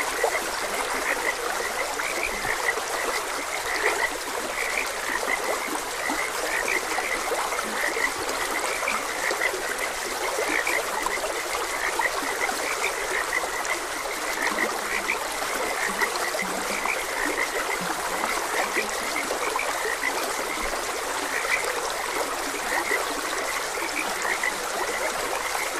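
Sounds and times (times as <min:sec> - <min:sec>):
babbling stream water: 0:00.0 - 0:25.7
frogs croaking: 0:00.0 - 0:25.7.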